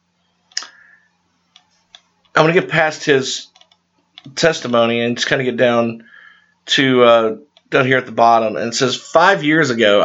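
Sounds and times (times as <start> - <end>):
computer mouse clicks while scrolling a web page: 1.5 - 2.3, 3.5 - 4.4
speech: 2.4 - 3.5, 4.3 - 10.0.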